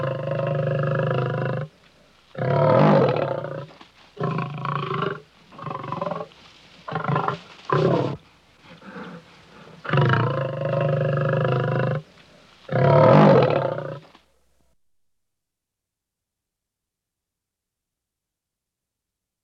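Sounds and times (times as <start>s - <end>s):
lion: 0.0s - 14.2s.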